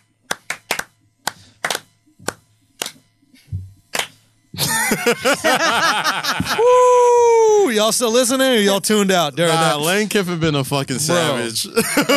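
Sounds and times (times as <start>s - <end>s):
slow clap: 0.0s - 3.1s, 3.9s - 4.2s
laughter: 4.6s - 7.2s, 11.6s - 12.1s
speech: 4.9s - 12.1s.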